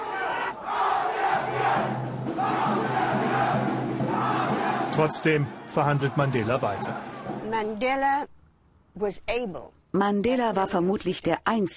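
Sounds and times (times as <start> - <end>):
far-right crowd roaring and shouting: 0.0 - 7.5
speech: 5.0 - 8.4, 9.0 - 11.7.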